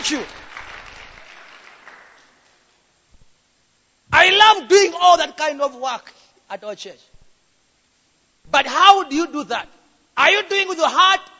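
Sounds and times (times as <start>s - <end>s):
audience applause: 0.0s - 2.5s
speech: 0.1s - 0.5s, 4.5s - 7.1s, 8.4s - 11.3s.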